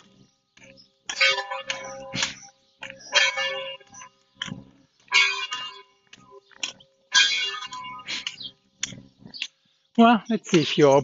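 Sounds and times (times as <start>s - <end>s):
church bell striking the hour: 1.1s - 4.0s, 5.1s - 6.0s, 7.1s - 8.0s
speech: 10.0s - 11.0s.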